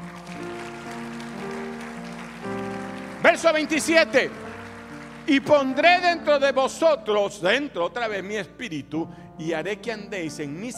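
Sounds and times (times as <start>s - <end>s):
audience applause: 0.0s - 6.2s
speech: 3.3s - 4.4s, 5.3s - 10.7s.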